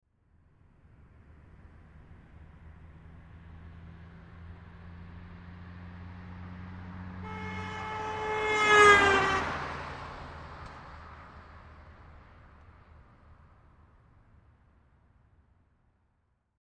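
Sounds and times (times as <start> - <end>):
1986 Ford Escort driving by right to left at 55 mph: 3.4 - 12.8.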